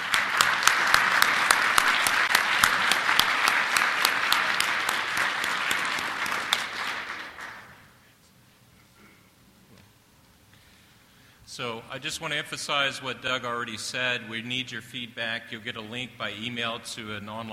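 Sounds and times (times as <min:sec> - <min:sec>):
audience applause: 0:00.0 - 0:07.9
speech: 0:11.6 - 0:17.5.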